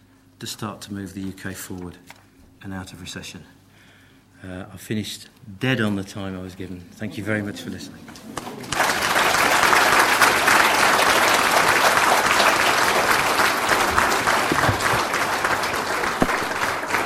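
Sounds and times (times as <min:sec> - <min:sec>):
speech: 0:00.4 - 0:03.6, 0:04.4 - 0:08.7
audience applause after presentation: 0:08.3 - 0:17.0.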